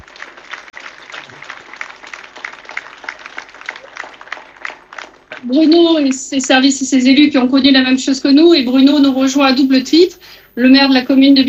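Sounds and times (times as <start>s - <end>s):
outdoor crowd applause: 0.0s - 5.5s
speech: 5.4s - 11.4s.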